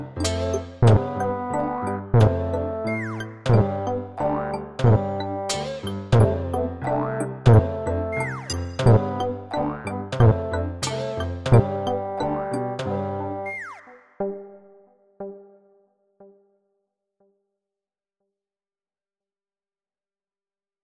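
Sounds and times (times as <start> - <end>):
melody for a robot: 0.0 - 14.4.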